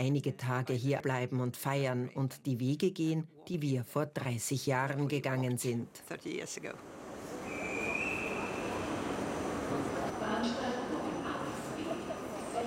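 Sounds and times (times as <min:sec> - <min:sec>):
speech: 0:00.0 - 0:07.0
train station ambience: 0:06.2 - 0:12.6
indistinct voices: 0:06.6 - 0:12.6
train brakes squealing: 0:07.2 - 0:12.6.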